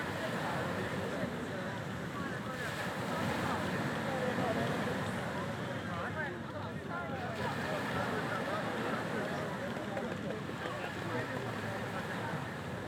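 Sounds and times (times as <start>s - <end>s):
waves on a beach: 0.0s - 12.8s.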